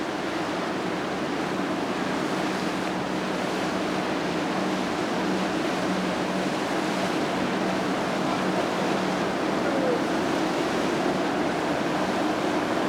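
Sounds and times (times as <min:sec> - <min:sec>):
ship passing in the port of Montevideo: 0:00.1 - 0:12.8
seagulls at the port of Montevideo: 0:07.4 - 0:12.8.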